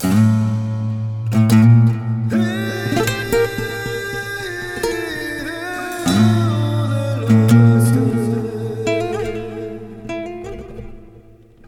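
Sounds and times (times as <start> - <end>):
guitar loops: 0.0 - 11.6.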